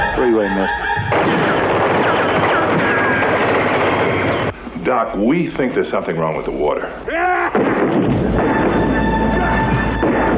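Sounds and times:
speech: 0:00.2 - 0:01.6, 0:04.9 - 0:09.0
gunfire: 0:01.1 - 0:04.5, 0:07.5 - 0:10.3.

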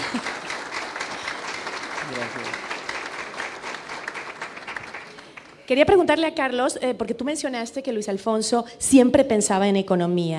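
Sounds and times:
crowd applause: 0:00.0 - 0:05.7
speech: 0:02.2 - 0:02.7, 0:05.7 - 0:10.3.

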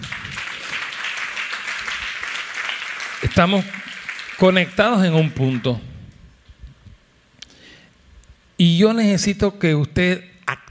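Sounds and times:
audience applause: 0:00.0 - 0:05.8
speech: 0:03.4 - 0:05.9, 0:08.6 - 0:10.6.

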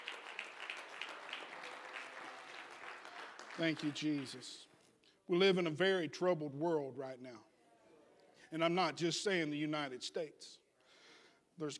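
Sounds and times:
audience clapping in rhythm: 0:00.0 - 0:04.7
speech: 0:03.6 - 0:04.7, 0:05.3 - 0:07.5, 0:08.5 - 0:10.6, 0:11.6 - 0:11.7.

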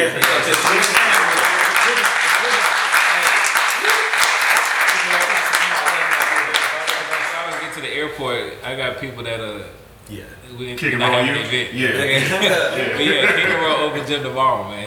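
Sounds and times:
laughter: 0:00.0 - 0:04.2, 0:11.9 - 0:14.2
round of applause: 0:00.0 - 0:07.8
speech: 0:08.6 - 0:14.8.

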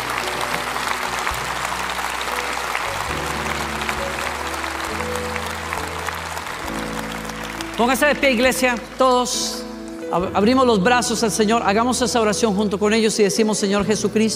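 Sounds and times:
audience applauding: 0:00.0 - 0:10.1
speech: 0:07.8 - 0:14.3.

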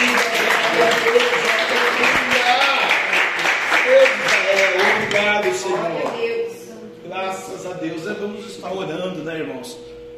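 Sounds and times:
applause: 0:00.0 - 0:06.2
speech: 0:07.7 - 0:09.9.

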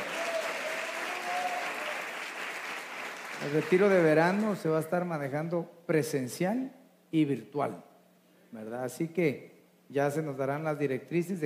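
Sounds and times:
audience applause: 0:00.0 - 0:04.5
speech: 0:03.4 - 0:07.9, 0:08.5 - 0:11.4.

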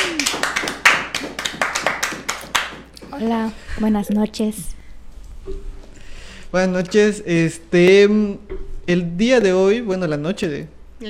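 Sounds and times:
applause for the guest: 0:00.0 - 0:02.9
speech: 0:03.2 - 0:04.8, 0:06.5 - 0:11.0.

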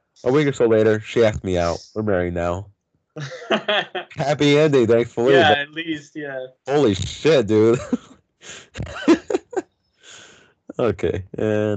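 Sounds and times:
speech: 0:00.2 - 0:09.2, 0:10.8 - 0:11.7
laughter: 0:00.3 - 0:02.4, 0:03.2 - 0:11.7
sniffling: 0:07.6 - 0:08.9, 0:10.0 - 0:10.4
deep nasal breathing: 0:08.4 - 0:08.8, 0:10.0 - 0:10.5.

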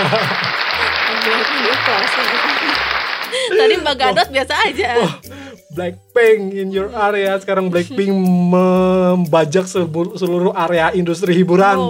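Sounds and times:
speech: 0:00.0 - 0:00.4, 0:01.2 - 0:11.8
small group applauding: 0:00.0 - 0:04.9
people talking and laughing: 0:00.0 - 0:05.5, 0:06.4 - 0:09.6.

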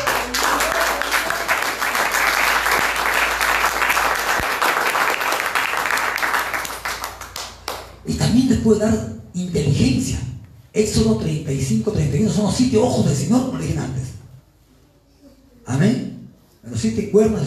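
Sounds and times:
audience applause: 0:00.0 - 0:07.8
speech: 0:08.7 - 0:14.2, 0:15.7 - 0:16.0, 0:16.8 - 0:17.4.

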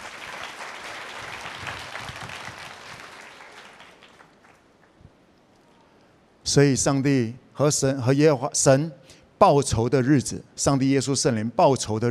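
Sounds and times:
audience applause: 0:00.0 - 0:05.0
speech: 0:06.5 - 0:12.0.

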